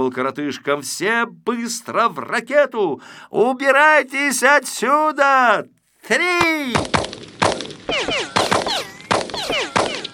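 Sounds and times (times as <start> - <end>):
speech: 0.0 - 7.3
police gunshot sound effect in an audio drama: 6.4 - 10.1
whistling descending sweeps like bullets flying past: 7.9 - 10.1.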